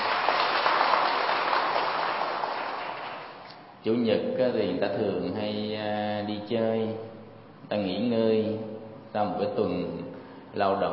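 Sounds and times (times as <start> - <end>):
Buddhist followers applauding at a morning dharma gathering: 0.0 - 3.4
speech: 3.8 - 10.0, 10.6 - 10.9.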